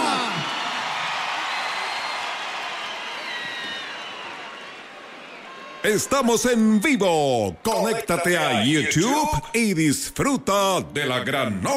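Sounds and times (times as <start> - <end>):
audience applause and cheering: 0.0 - 8.9
speech: 5.8 - 11.7.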